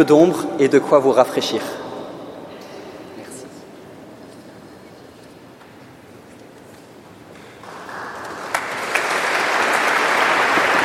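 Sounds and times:
speech: 0.0s - 1.8s
audience applauding in a cathedral: 7.6s - 10.8s.

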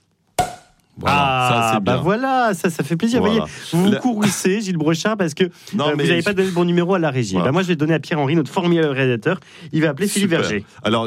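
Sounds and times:
champagne cork popping: 0.4s - 0.9s
speech: 1.0s - 11.0s.

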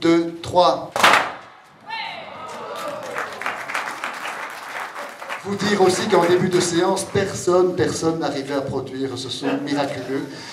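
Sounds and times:
speech: 0.0s - 1.0s, 5.4s - 10.5s
firecrackers popping: 1.0s - 1.5s
laughter: 9.2s - 10.5s.

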